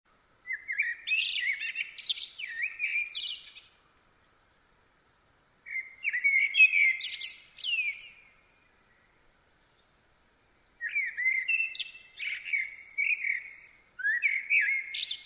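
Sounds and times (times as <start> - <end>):
common blackbird Turdus merula singing fluting whistles and scratchy twittering: 0.4 - 3.8, 5.7 - 10.0, 10.8 - 15.2.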